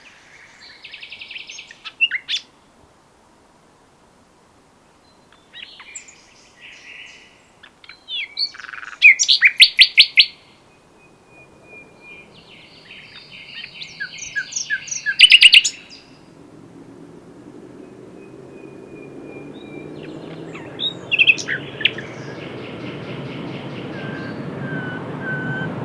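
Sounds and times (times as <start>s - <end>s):
common nightingale singing: 5.0s - 16.4s, 17.6s - 25.8s.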